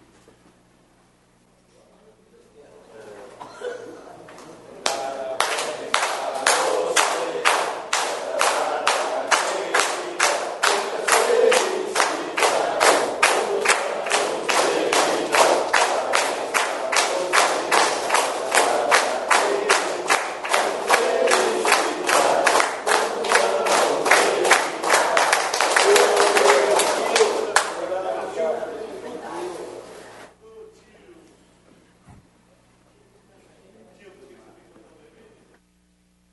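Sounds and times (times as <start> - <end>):
people talking: 1.7 - 31.4, 32.9 - 35.6
rhythmic clapping: 4.3 - 28.4
city council members singing a birthday song to a fellow councillor: 4.6 - 30.3.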